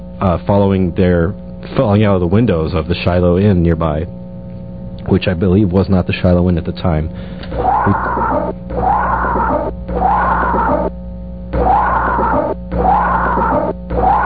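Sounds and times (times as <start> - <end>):
speech: 0.2 - 4.2, 5.0 - 8.6
scream in recorded ghost investigation audio: 7.5 - 14.2.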